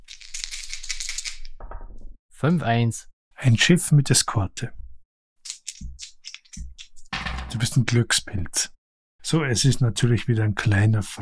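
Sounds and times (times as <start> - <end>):
two dice rolling on a surface: 0.1 - 2.0, 5.5 - 7.5
speech: 2.4 - 4.8, 7.6 - 11.2.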